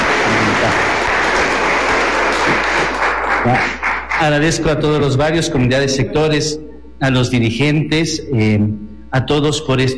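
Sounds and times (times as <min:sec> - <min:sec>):
audience applause: 0:00.0 - 0:04.3
speech: 0:03.4 - 0:09.9.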